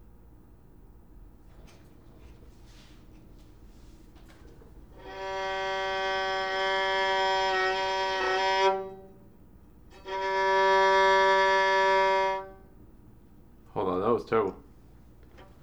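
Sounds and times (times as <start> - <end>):
violin: 4.9 - 9.2, 9.9 - 12.7.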